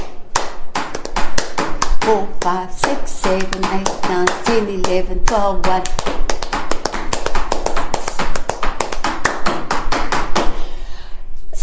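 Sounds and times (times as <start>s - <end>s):
rhythmic hand clapping and foot stamping: 0.0s - 10.7s
speech: 2.1s - 6.3s.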